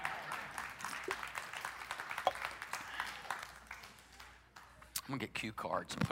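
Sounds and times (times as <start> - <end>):
audience clapping: 0.0 - 5.0
speech: 5.1 - 6.1.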